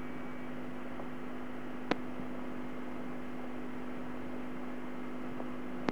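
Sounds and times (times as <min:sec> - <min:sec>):
BT telephone line tones: 0:00.0 - 0:05.8.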